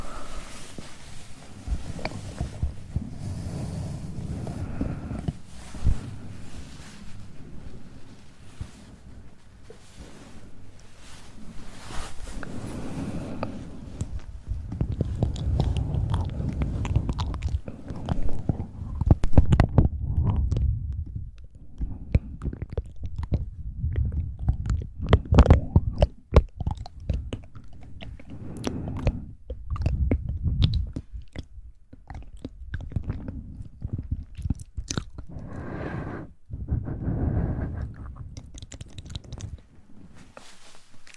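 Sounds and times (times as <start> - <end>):
low soft rumble: 0.0 - 41.1
wet mouth clicks smacks and chewing-like bites: 13.4 - 36.0, 36.6 - 41.1.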